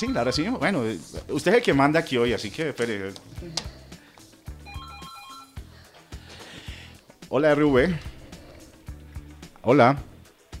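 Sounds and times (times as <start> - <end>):
speech: 0.0 - 3.8, 7.3 - 8.1, 9.6 - 10.1
telephone ringing with an incoming call: 4.6 - 5.6.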